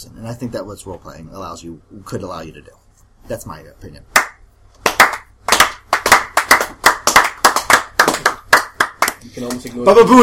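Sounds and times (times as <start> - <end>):
speech: 0.1 - 4.2, 9.2 - 10.2
hand clapping: 4.1 - 9.8.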